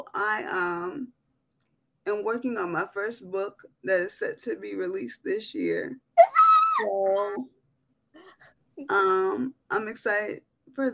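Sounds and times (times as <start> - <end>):
speech: 0.2 - 1.2, 2.1 - 7.6, 8.8 - 10.9
person screaming excitedly: 6.2 - 7.0.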